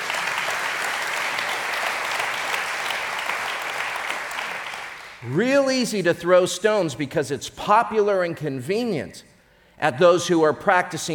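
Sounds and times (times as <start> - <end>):
audience clapping: 0.0 - 5.3
speech: 5.2 - 11.1.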